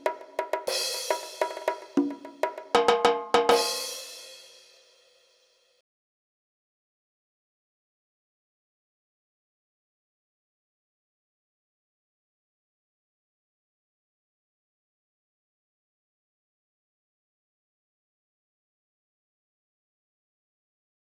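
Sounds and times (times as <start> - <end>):
percussion: 0.0 - 5.4.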